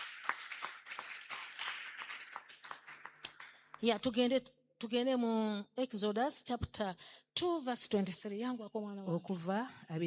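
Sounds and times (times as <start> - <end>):
audience clapping: 0.0 - 3.9
speech: 3.8 - 10.0.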